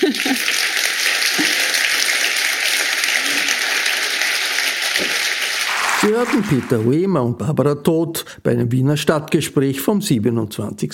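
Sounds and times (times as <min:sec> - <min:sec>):
audience applause: 0:00.0 - 0:07.0
speech: 0:06.0 - 0:10.9.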